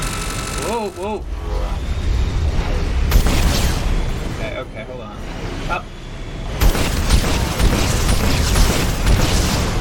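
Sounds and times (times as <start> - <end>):
speech: 0.7 - 1.9, 4.4 - 6.0
video game missiles hitting a satellite: 1.8 - 4.5, 6.6 - 9.7.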